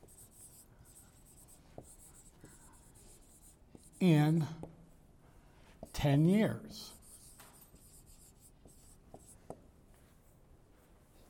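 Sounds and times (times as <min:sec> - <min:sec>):
pen writing down a figure: 0:00.0 - 0:04.0, 0:06.9 - 0:09.6
speech: 0:04.0 - 0:04.6, 0:06.0 - 0:07.0.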